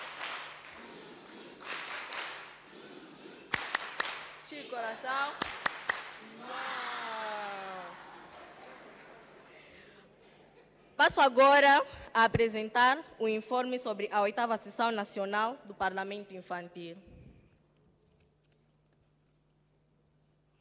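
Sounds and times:
audience applause: 0:00.0 - 0:00.9, 0:01.6 - 0:02.6, 0:03.5 - 0:04.4, 0:05.4 - 0:09.8
speech: 0:04.7 - 0:05.5, 0:11.0 - 0:17.1
laughter: 0:06.2 - 0:11.0.

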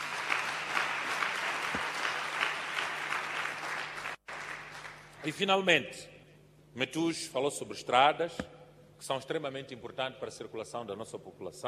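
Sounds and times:
audience applause: 0:00.0 - 0:05.2
speech: 0:05.2 - 0:06.1, 0:06.8 - 0:11.6.

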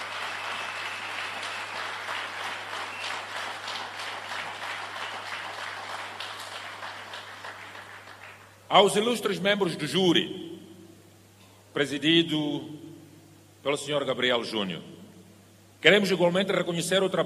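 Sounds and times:
crowd applause: 0:00.0 - 0:08.6
low steady hum: 0:00.0 - 0:17.2
speech: 0:08.7 - 0:10.5, 0:11.8 - 0:12.8, 0:13.6 - 0:15.0, 0:15.8 - 0:17.2.

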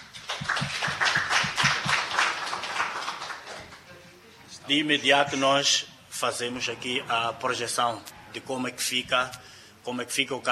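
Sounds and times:
audience applause: 0:00.0 - 0:03.8
speech: 0:04.7 - 0:10.5.

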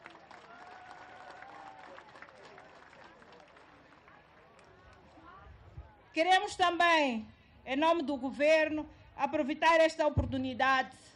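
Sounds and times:
applause: 0:00.0 - 0:05.3
speech: 0:06.2 - 0:11.1.

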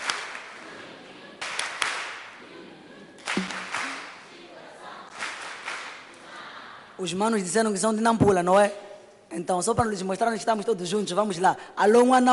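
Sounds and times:
affectionate applause: 0:00.0 - 0:00.6, 0:01.4 - 0:02.4, 0:03.2 - 0:04.2, 0:05.1 - 0:06.1
speech: 0:07.0 - 0:12.3.

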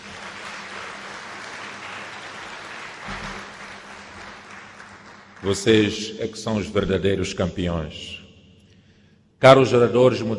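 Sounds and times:
crowd applause: 0:00.0 - 0:06.0
speech: 0:05.4 - 0:08.2, 0:09.4 - 0:10.3.

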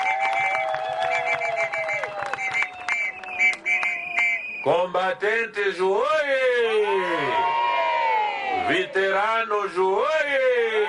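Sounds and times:
crowd applauding: 0:00.0 - 0:04.5
speech: 0:04.6 - 0:07.6, 0:08.7 - 0:10.8.

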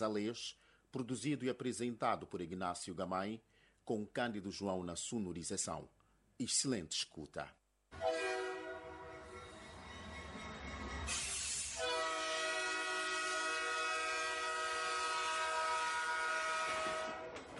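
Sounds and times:
speech: 0:00.0 - 0:08.1
locomotive horn on the Sena railway line from Moatize: 0:08.0 - 0:17.4.

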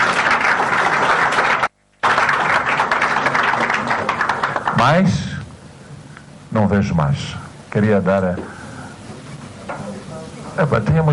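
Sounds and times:
audience applause: 0:00.0 - 0:05.1
speech: 0:04.8 - 0:05.3, 0:06.5 - 0:08.6, 0:10.6 - 0:11.1.

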